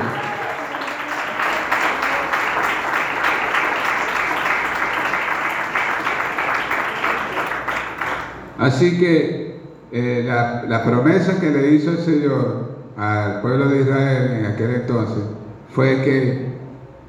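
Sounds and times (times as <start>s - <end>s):
crowd applause: 0.0s - 8.5s
speech: 8.6s - 16.4s.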